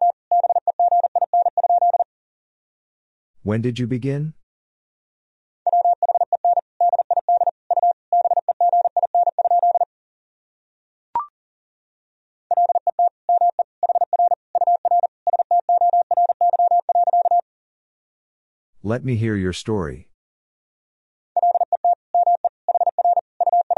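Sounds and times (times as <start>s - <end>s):
Morse code tones at 40 words per minute: 0.0s - 2.1s, 5.7s - 9.9s, 12.5s - 17.4s, 21.4s - 23.7s
speech: 3.4s - 4.4s, 18.9s - 20.1s.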